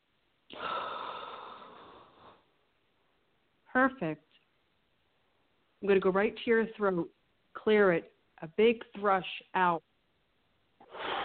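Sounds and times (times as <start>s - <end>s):
deep breathing in through the nose: 0.5s - 2.5s, 10.8s - 11.2s
speech: 3.8s - 4.4s, 5.8s - 9.9s.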